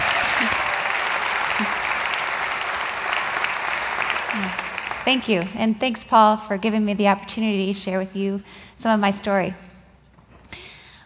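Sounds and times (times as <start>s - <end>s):
audience clapping welcoming a woman speaker: 0.0s - 5.8s
speech: 5.1s - 9.7s.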